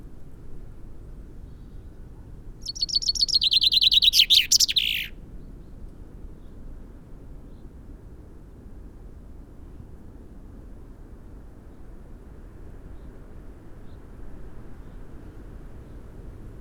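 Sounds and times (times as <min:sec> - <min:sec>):
Fringilla coelebs common chaffinch song: 0:02.6 - 0:05.1.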